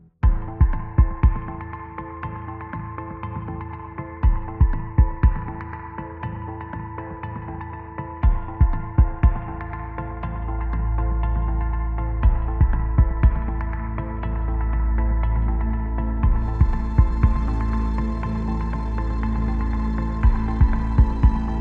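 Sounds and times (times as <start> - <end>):
bass: 0.0 - 21.5
drums: 0.2 - 10.1, 12.2 - 13.7, 16.2 - 21.5
pads: 0.2 - 21.5.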